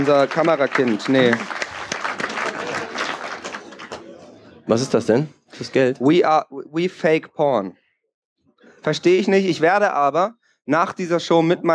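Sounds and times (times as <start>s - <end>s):
speech: 0.0s - 1.6s, 4.7s - 7.8s, 8.8s - 11.7s
audience applause: 0.0s - 4.2s.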